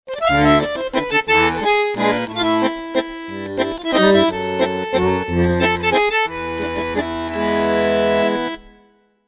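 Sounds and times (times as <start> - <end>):
dance ringtone melody: 0.2 - 8.6.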